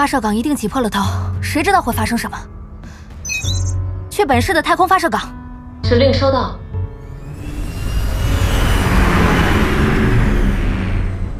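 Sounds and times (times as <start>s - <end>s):
speech: 0.0s - 2.6s, 4.2s - 6.6s
flying car joining a stream of air traffic: 7.0s - 11.3s.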